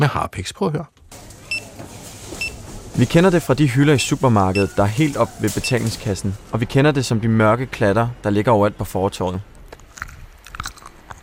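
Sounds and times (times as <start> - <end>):
speech: 0.0 - 1.2, 3.0 - 9.5
chewing gum being chewed: 9.7 - 11.2.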